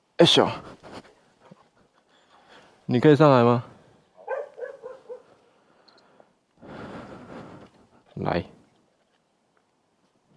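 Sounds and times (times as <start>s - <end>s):
speech: 0.2s - 0.7s, 2.9s - 3.7s, 8.2s - 8.6s
dog whimpering and barking: 4.2s - 5.3s.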